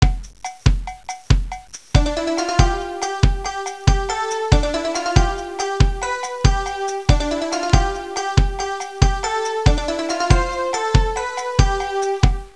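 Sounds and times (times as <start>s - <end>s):
rhythmic ringtone music: 0.0s - 12.5s.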